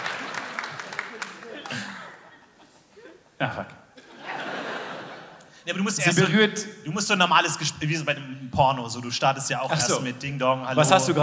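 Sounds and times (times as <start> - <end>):
audience clapping: 0.0 - 2.3
laughter: 0.2 - 6.4
speech: 3.4 - 3.8, 5.6 - 11.2.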